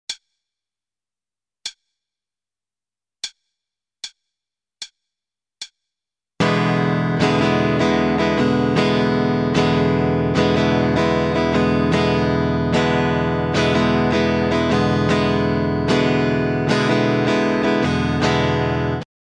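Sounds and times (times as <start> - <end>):
starter guitar rhythm: 6.4 - 19.1.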